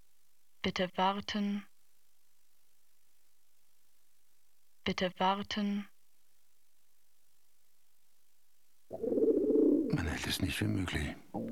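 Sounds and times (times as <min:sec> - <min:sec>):
speech: 0:00.6 - 0:01.7, 0:04.8 - 0:05.9, 0:09.9 - 0:11.5
pigeon cooing inside an apartment: 0:08.9 - 0:10.1, 0:11.3 - 0:11.5.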